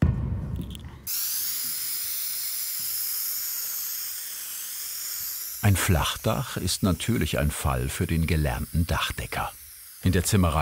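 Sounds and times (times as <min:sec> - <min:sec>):
low rumbling burst: 0:00.0 - 0:01.1
spray lance with pressure tank spraying primer: 0:00.7 - 0:10.6
speech: 0:05.7 - 0:10.6.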